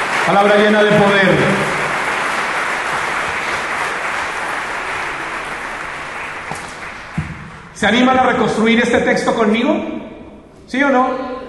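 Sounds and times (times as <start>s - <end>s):
audience applause: 0.0s - 7.8s
speech: 0.3s - 1.8s, 7.8s - 10.0s, 10.7s - 11.3s.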